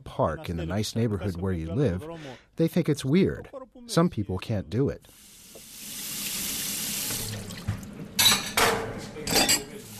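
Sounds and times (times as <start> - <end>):
speech: 0.2 - 5.3
running tap at a sink: 5.5 - 5.7, 7.0 - 8.0
plates and cutlery clattering while washing dishes: 7.6 - 9.8.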